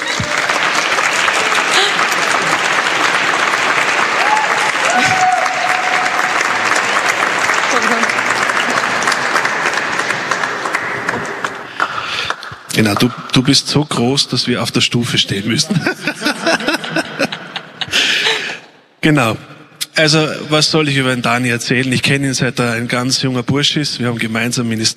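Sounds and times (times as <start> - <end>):
applause: 0.0 - 13.3
laughter: 1.4 - 2.9, 15.3 - 18.7
speech: 12.8 - 16.3, 19.0 - 24.9.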